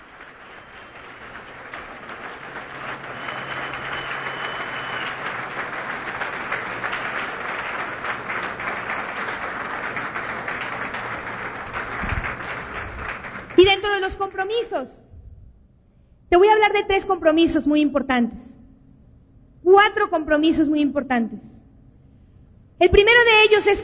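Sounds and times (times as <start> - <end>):
audience applause: 0.0 - 13.7
speech: 14.5 - 15.0, 16.3 - 18.5, 19.9 - 21.5, 22.8 - 23.8.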